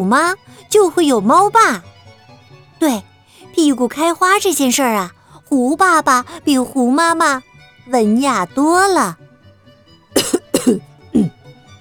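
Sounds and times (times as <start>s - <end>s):
speech: 0.0s - 1.9s, 2.8s - 9.2s, 10.2s - 11.4s
man clearing his throat: 10.2s - 11.4s.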